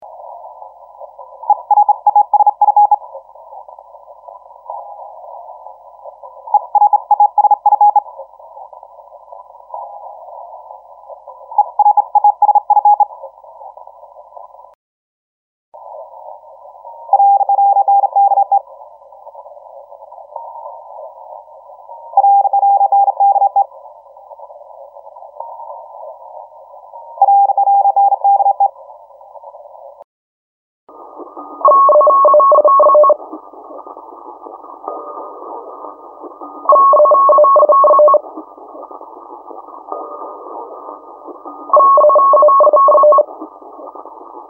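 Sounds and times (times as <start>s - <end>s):
CW Morse code beeps: 1.5s - 3.0s, 6.5s - 8.1s, 11.6s - 13.1s, 17.1s - 18.6s, 22.2s - 23.7s, 27.2s - 28.7s, 31.4s - 33.2s, 36.5s - 38.2s, 41.5s - 43.4s.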